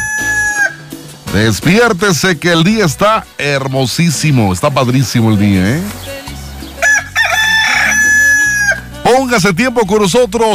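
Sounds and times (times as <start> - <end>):
rooster crowing: 0.0 - 1.0, 6.8 - 9.0
speech: 1.3 - 6.2, 9.1 - 10.5.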